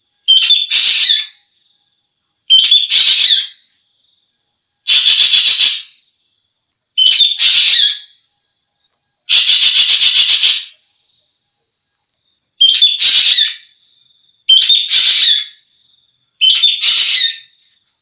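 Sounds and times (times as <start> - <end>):
Javan green magpie whistles and rasps: 0.3 - 1.4, 2.5 - 3.6, 4.9 - 6.0, 7.0 - 8.1, 9.3 - 10.8, 12.6 - 13.7, 14.5 - 15.6, 16.4 - 17.5.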